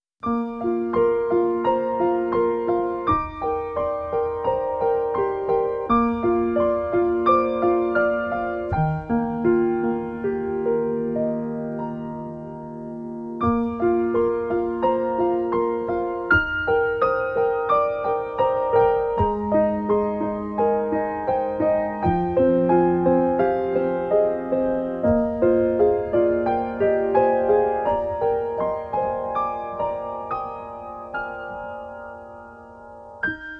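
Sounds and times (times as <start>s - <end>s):
solo piano: 0.1s - 33.5s.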